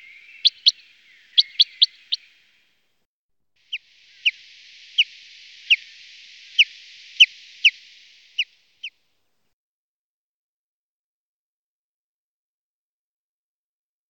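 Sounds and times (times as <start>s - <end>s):
common chaffinch singing: 0.0s - 2.4s, 4.1s - 8.6s.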